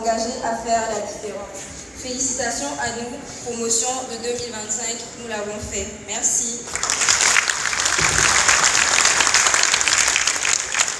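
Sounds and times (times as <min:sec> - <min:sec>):
speech: 0:00.0 - 0:07.1
audience applause: 0:06.7 - 0:10.9.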